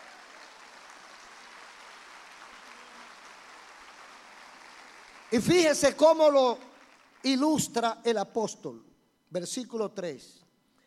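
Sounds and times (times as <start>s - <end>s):
audience applause: 0.0s - 5.8s
speech: 5.3s - 10.4s.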